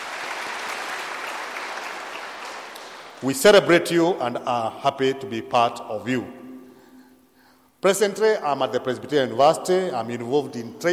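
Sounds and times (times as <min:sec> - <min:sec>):
audience clapping for the choir: 0:00.0 - 0:03.3
speech: 0:03.2 - 0:06.4, 0:07.8 - 0:10.9.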